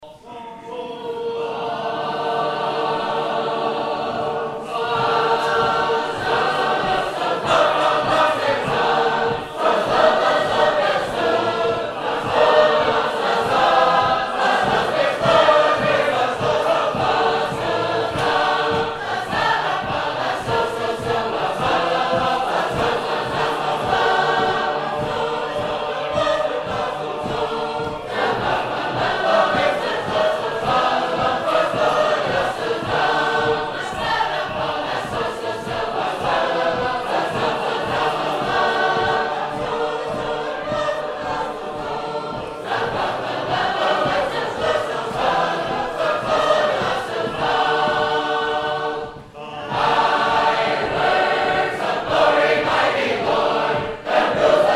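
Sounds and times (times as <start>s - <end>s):
Sacred Harp choir singing: 0.0s - 54.7s.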